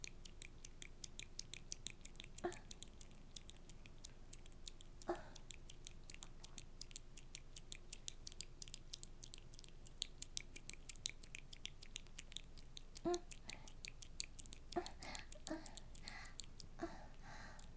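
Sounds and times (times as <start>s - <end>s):
fingers making wet squelching sounds: 0.0s - 17.7s.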